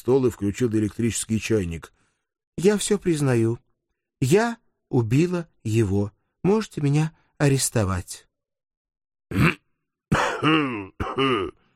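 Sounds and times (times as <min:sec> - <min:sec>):
speech: 0:00.0 - 0:02.0, 0:02.6 - 0:03.6, 0:04.2 - 0:08.3, 0:09.3 - 0:09.6, 0:10.4 - 0:11.6
person coughing: 0:09.3 - 0:11.7.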